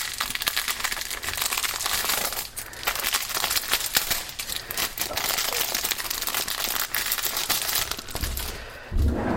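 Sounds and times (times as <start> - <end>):
plastic wrapping crinkled off a bag: 0.0 - 9.0.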